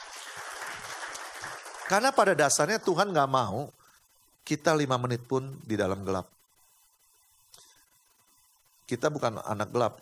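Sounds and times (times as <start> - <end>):
audience applause: 0.0 - 2.4
speech: 1.9 - 3.8, 4.5 - 6.4, 8.9 - 9.9.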